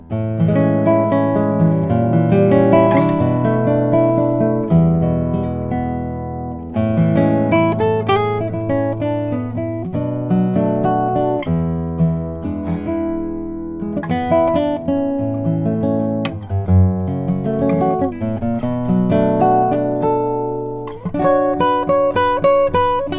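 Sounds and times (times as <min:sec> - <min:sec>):
Lowden S35J Madagascar rosewood acoustic guitar: 0:00.0 - 0:23.1.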